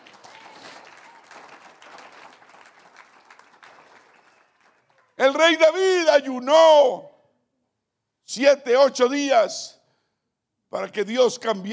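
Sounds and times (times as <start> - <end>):
audience applause: 0.0 - 5.2
speech: 5.2 - 7.1, 8.4 - 9.8, 10.7 - 11.7.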